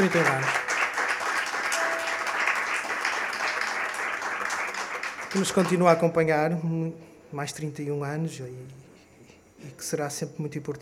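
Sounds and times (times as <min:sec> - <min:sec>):
speech: 0:00.0 - 0:00.6, 0:05.3 - 0:08.9, 0:09.6 - 0:10.7
audience applause: 0:00.0 - 0:06.0.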